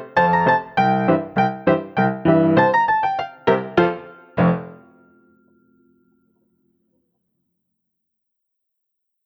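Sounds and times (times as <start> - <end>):
instrumental music: 0.0 - 5.6.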